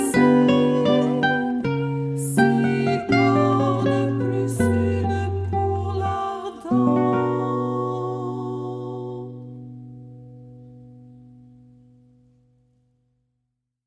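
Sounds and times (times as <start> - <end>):
person singing: 0.0 - 9.9.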